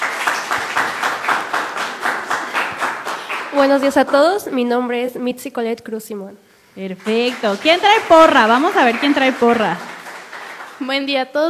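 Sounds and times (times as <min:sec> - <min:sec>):
applause: 0:00.0 - 0:04.6, 0:06.9 - 0:11.2
speech: 0:03.6 - 0:09.9, 0:10.8 - 0:11.4.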